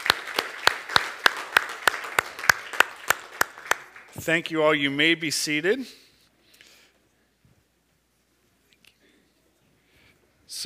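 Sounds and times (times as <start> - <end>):
audience applause: 0.0 - 4.2
speech: 4.2 - 6.0.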